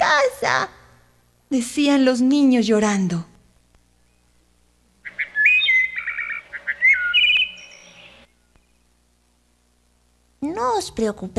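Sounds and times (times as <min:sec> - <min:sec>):
speech: 0:00.4 - 0:00.8, 0:01.5 - 0:03.3, 0:10.6 - 0:11.3
small birds chirping: 0:05.0 - 0:08.9.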